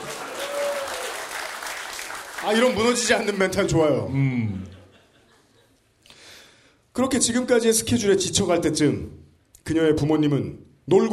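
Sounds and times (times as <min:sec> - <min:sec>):
applause: 0:00.0 - 0:03.8
speech: 0:02.4 - 0:04.7, 0:07.0 - 0:11.1
laughter: 0:04.4 - 0:05.9.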